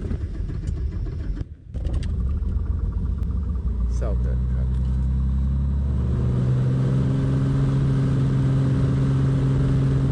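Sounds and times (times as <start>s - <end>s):
small airplane engine: 0.0s - 10.1s
speech: 4.0s - 4.5s.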